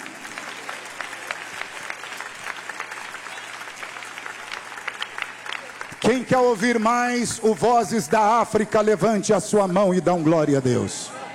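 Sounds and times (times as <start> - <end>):
audience clapping hands: 0.0 - 8.9
speech: 6.0 - 11.2.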